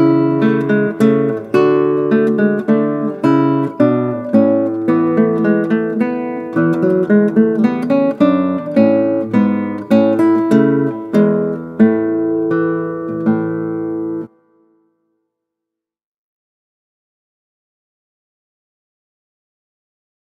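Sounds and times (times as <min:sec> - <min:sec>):
classical guitar: 0:00.0 - 0:15.0.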